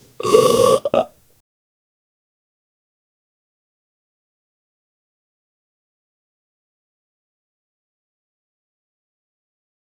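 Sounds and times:
nervous gulp: 0:00.0 - 0:01.1.

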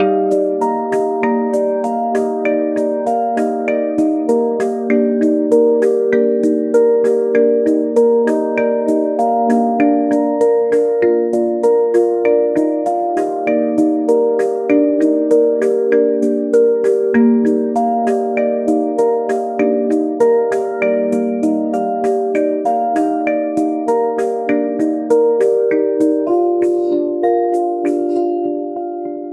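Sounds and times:
shaker: 0:00.0 - 0:28.4.

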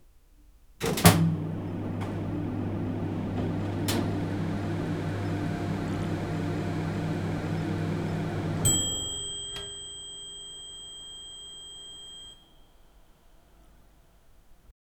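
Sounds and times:
professional kitchen appliances: 0:00.8 - 0:12.5.

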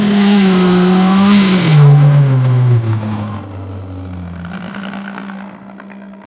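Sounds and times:
drag race car steering wheel: 0:00.2 - 0:06.3.

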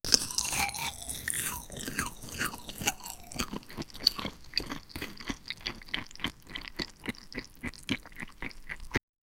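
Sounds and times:
eating crispy fried chicken: 0:00.0 - 0:09.0.

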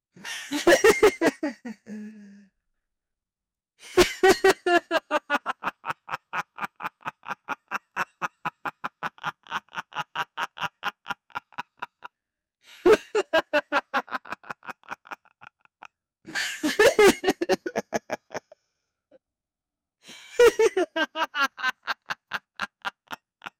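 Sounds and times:
person laughing psychotically: 0:00.2 - 0:02.4, 0:03.9 - 0:12.1, 0:12.8 - 0:15.6, 0:16.3 - 0:18.6, 0:20.3 - 0:23.5.

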